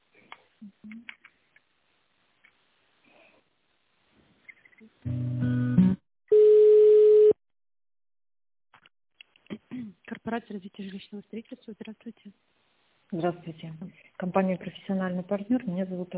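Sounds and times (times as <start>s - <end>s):
telephone ringing tone as an office call is transferred: 6.3s - 7.4s
speech: 10.4s - 16.1s.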